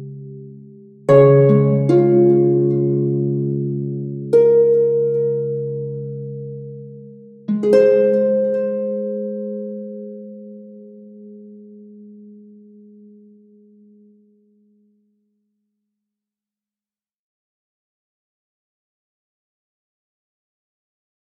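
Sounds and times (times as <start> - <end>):
harp: 0.0 - 15.2.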